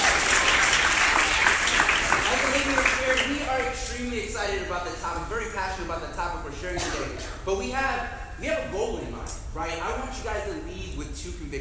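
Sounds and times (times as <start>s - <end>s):
audience applause: 0.0s - 3.7s
speech: 4.0s - 11.6s.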